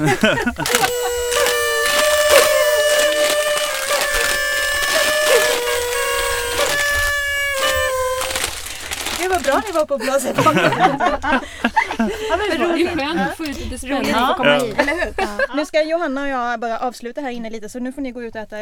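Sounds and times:
speech: 0:00.0 - 0:01.0, 0:09.7 - 0:18.6
party horns being blown: 0:00.0 - 0:09.9
laughter: 0:00.0 - 0:15.7.

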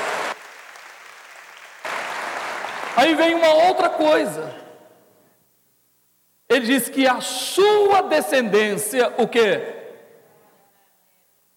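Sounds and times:
audience applause: 0:00.0 - 0:03.4
speech: 0:03.0 - 0:04.6, 0:06.6 - 0:09.8.

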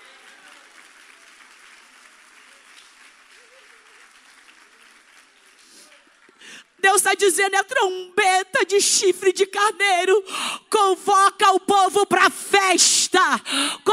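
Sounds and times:
audience applause: 0:00.0 - 0:06.8
speech: 0:06.8 - 0:13.9.

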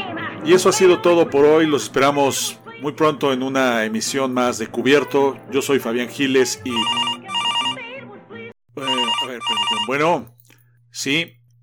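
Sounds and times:
speech: 0:00.4 - 0:07.2, 0:08.8 - 0:11.4
telephone ringing with electronic ringtone: 0:06.6 - 0:07.8, 0:08.8 - 0:10.3.

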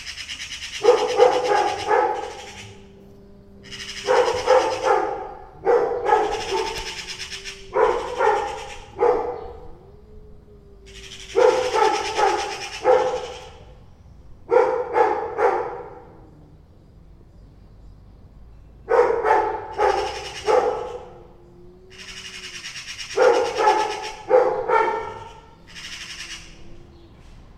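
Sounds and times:
harsh bird chatter: 0:00.0 - 0:09.6, 0:10.8 - 0:13.8, 0:19.4 - 0:21.2, 0:21.8 - 0:26.7
dog barking: 0:00.7 - 0:09.8, 0:10.9 - 0:13.8, 0:14.4 - 0:16.2, 0:18.8 - 0:21.3, 0:21.9 - 0:26.7.

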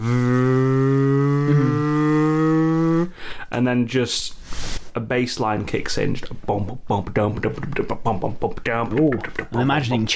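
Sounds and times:
voice imitating a car engine revving: 0:00.0 - 0:03.1
speech: 0:03.6 - 0:04.4, 0:05.0 - 0:10.1.

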